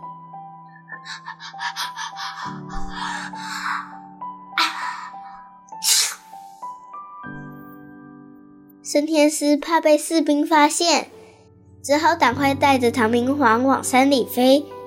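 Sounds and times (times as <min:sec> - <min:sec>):
speech: 0:01.0 - 0:04.0, 0:08.9 - 0:11.2, 0:11.8 - 0:14.7
sneeze: 0:05.8 - 0:06.4.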